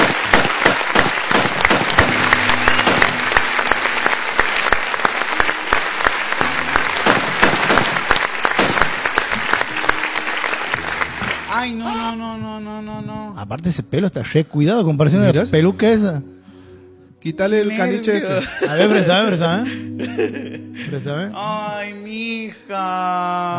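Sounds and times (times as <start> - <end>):
crowd clapping: 0.0 - 12.0
speech: 13.5 - 16.3, 17.2 - 23.5
laughter: 17.8 - 21.8.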